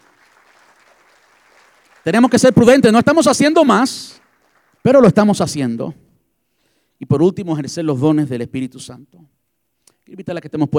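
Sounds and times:
audience applause: 0.0 - 5.0
speech: 2.0 - 4.2, 4.8 - 6.0, 7.0 - 9.4, 10.1 - 10.7.

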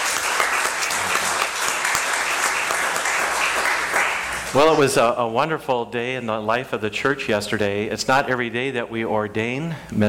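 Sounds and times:
audience applauding: 0.0 - 5.1
speech: 4.5 - 10.0.

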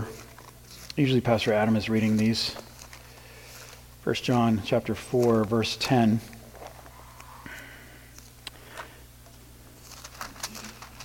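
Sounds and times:
Bible pages turning: 0.0 - 7.4, 9.7 - 11.0
speech: 1.0 - 2.7, 4.0 - 6.4.

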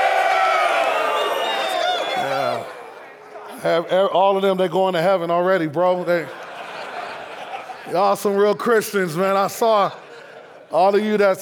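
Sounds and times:
large crowd cheering and shouting: 0.0 - 3.6
speech: 3.6 - 6.4, 7.9 - 10.0, 10.7 - 11.4
laughter: 5.8 - 11.4.

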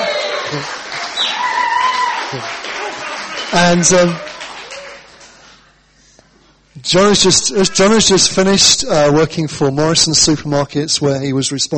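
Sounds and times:
audience cheering: 0.0 - 5.4
speech: 0.5 - 0.8, 2.3 - 2.6, 3.5 - 4.4, 6.8 - 11.7.

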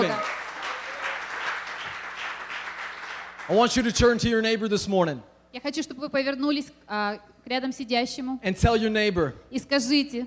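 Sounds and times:
crowd clapping: 0.0 - 4.2
speech: 3.5 - 10.2.

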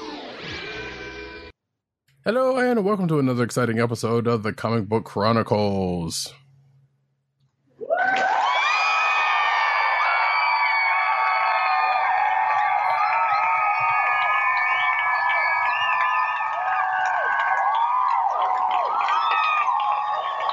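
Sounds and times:
speech: 2.3 - 6.4
applause: 8.0 - 20.5.

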